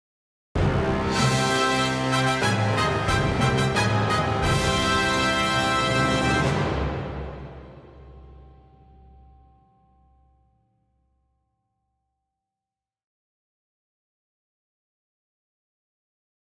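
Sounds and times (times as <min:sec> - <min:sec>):
regal fanfare stinger: 0:00.6 - 0:08.7.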